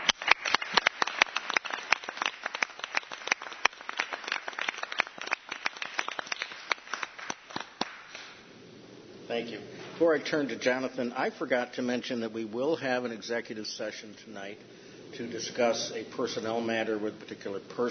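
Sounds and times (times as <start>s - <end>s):
meeting audience applauding: 0.0s - 8.2s
speech: 9.4s - 17.9s.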